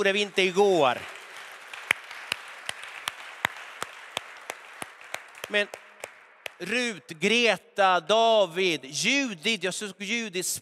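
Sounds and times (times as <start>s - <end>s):
speech: 0.0s - 1.2s, 5.5s - 5.8s, 6.6s - 10.6s
applause: 0.0s - 6.9s.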